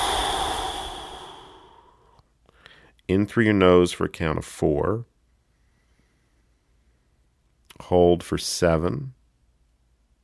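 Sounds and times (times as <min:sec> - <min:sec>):
person exhaling completely through the mouth: 0:00.0 - 0:02.8
speech: 0:03.1 - 0:05.1, 0:07.8 - 0:09.2.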